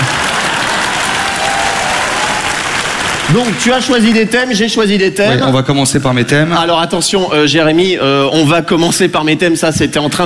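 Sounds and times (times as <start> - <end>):
audience applause: 0.0 - 4.4
speech: 3.3 - 10.2.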